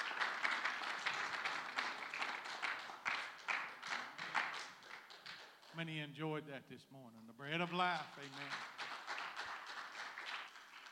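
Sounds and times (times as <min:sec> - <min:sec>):
audience clapping hands: 0:00.0 - 0:06.0, 0:07.5 - 0:10.9
speech: 0:05.8 - 0:08.8.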